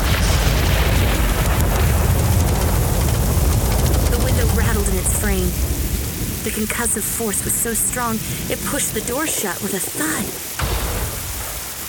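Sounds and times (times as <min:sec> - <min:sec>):
loud thunderclap after lightning: 0:00.0 - 0:06.5, 0:10.4 - 0:11.8
speech: 0:06.6 - 0:10.6.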